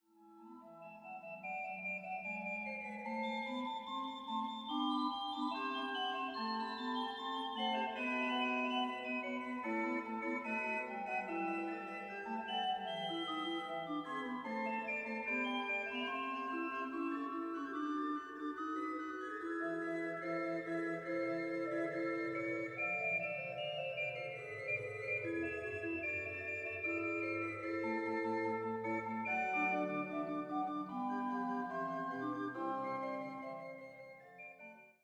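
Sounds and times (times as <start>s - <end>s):
Hinsz pipe organ sound sample: 0.8s - 34.7s.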